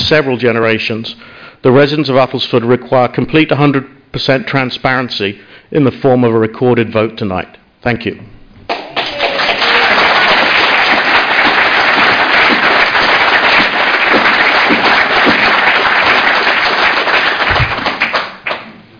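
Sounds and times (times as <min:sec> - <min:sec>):
speech: 0:00.1 - 0:08.3
crowd applause at council meeting: 0:08.7 - 0:18.7.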